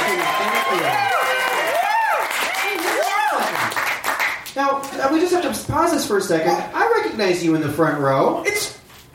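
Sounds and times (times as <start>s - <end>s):
whoops and cheers: 0.0s - 3.8s
live audience applause: 0.0s - 4.5s
speech: 5.0s - 8.7s.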